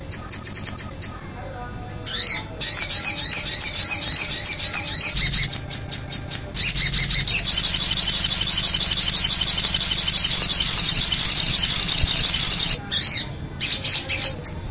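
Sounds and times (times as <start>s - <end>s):
little spiderhunter calling with rapid high chirps: 0.1s - 1.1s, 2.1s - 14.5s.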